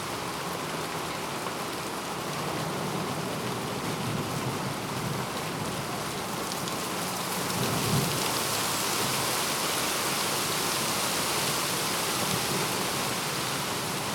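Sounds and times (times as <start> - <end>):
rain: 0.0 - 14.1.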